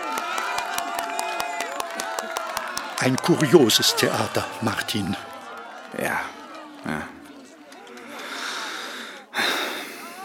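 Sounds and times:
crowd cheering jubilantly: 0.0 - 10.2
speech: 3.0 - 5.3, 6.0 - 7.1.

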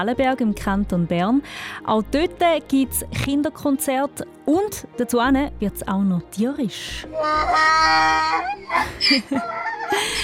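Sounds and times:
speech: 0.0 - 10.2
donkey braying: 7.0 - 10.2
laughter: 7.2 - 10.2.

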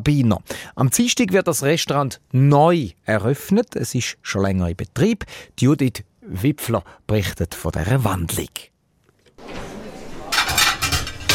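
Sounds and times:
speech: 0.0 - 8.7
crockery clattering as a warm plate is taken from an oven in a restaurant kitchen: 9.4 - 11.3.

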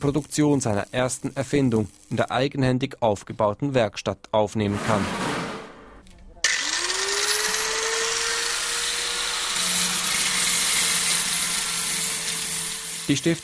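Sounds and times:
welding: 0.0 - 2.4, 6.4 - 13.4
speech: 0.0 - 5.3, 13.1 - 13.4
angle grinder cutting metal: 6.4 - 13.4.

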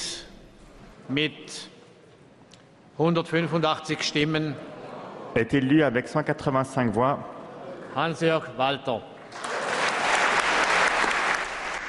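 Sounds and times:
speech: 1.1 - 1.8, 3.0 - 9.5
applause in parliament chamber: 9.2 - 11.8.

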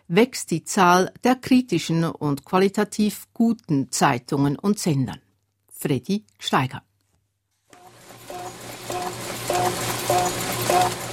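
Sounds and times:
speech: 0.1 - 5.2, 5.8 - 6.9
newspaper printing press at the Muscat Daily starting up: 7.8 - 11.1.

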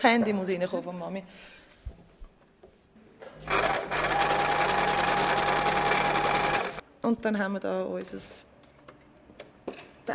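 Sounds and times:
speech: 0.0 - 1.6, 3.4 - 3.8, 7.0 - 8.5
sewing machine stitching fabric: 3.4 - 6.8.

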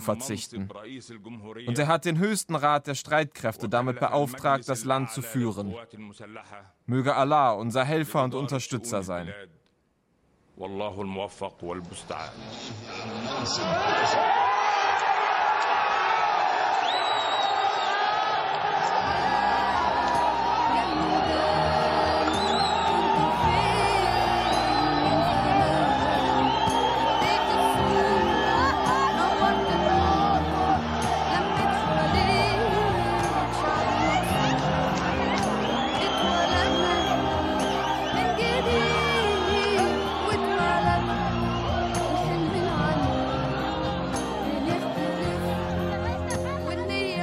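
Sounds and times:
speech: 0.0 - 9.6, 10.6 - 14.5
large crowd cheering and roaring: 13.3 - 47.1.

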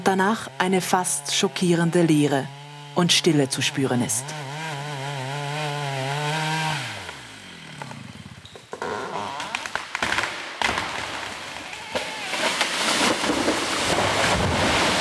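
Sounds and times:
chainsaw felling a large tropical tree: 0.0 - 14.9
speech: 0.1 - 4.5
splintering wood of a large falling tree cracking and crashing: 8.7 - 14.9.

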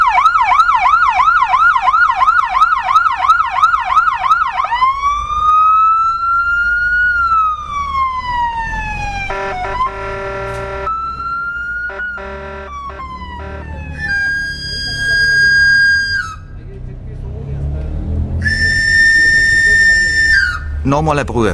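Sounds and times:
street traffic rumble: 0.0 - 21.5
knife grinder's pan flute call: 12.2 - 16.5, 18.4 - 20.7
speech: 21.0 - 21.5.

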